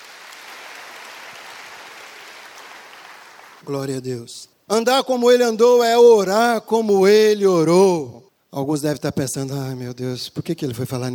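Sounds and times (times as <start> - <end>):
audience applause: 0.0 - 3.6
speech: 3.6 - 11.1.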